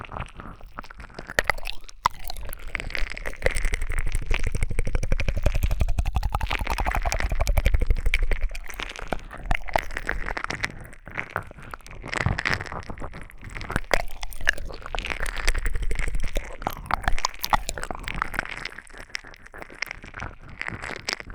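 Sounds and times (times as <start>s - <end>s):
ear licking sounds: 0.2s - 20.0s
squeezing sounds: 1.4s - 11.3s, 13.4s - 18.7s.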